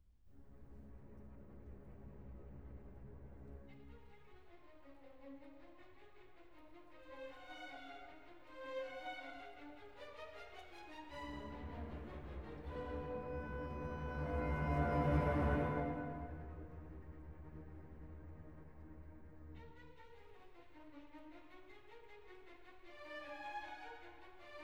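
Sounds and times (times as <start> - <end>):
orchestral symphony movement depicting a thunderstorm: 8.0 - 21.0.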